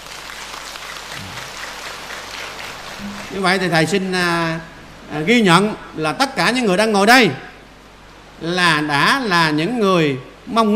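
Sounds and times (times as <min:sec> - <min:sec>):
audience applauding at a Buddhist dharma talk: 0:00.0 - 0:04.0
speech: 0:03.0 - 0:07.5, 0:08.4 - 0:10.7.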